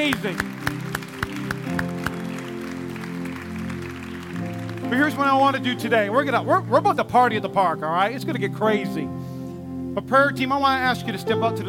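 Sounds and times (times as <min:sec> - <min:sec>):
speech: 0:00.0 - 0:00.8, 0:04.9 - 0:09.3, 0:10.0 - 0:11.6
audience applause: 0:00.0 - 0:05.7.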